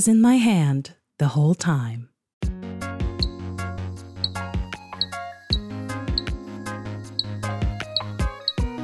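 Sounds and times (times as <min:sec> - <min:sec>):
speech: 0:00.0 - 0:02.1
chorus of dink frogs calling: 0:04.1 - 0:08.7.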